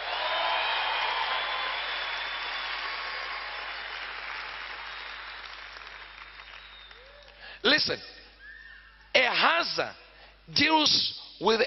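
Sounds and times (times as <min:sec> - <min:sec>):
audience clapping hands: 0:00.0 - 0:07.5
speech: 0:07.6 - 0:08.2, 0:09.4 - 0:11.6.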